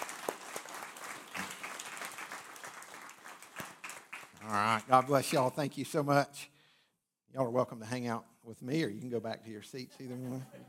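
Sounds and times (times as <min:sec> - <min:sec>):
church audience applauding: 0:00.0 - 0:05.3
speech: 0:04.5 - 0:06.5, 0:07.3 - 0:10.6.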